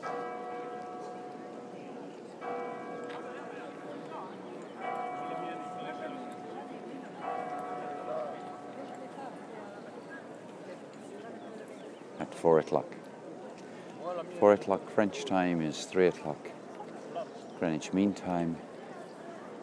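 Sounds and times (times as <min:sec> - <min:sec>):
church bells chiming: 0:00.0 - 0:09.4
constant murmur of crowd noise: 0:00.0 - 0:19.6
speech: 0:12.3 - 0:13.0, 0:14.4 - 0:16.6, 0:17.6 - 0:18.7.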